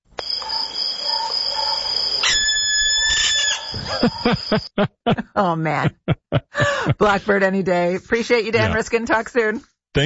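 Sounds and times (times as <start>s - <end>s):
barn owl screech: 1.1s - 4.2s
laughter: 3.8s - 7.2s
speech: 4.0s - 10.0s.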